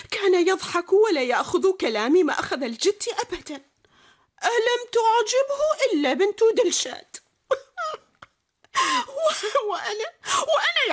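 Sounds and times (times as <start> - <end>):
speech: 0.4 - 3.7, 4.4 - 7.6, 8.8 - 10.9
woman crying in sobbing bursts: 7.5 - 10.9.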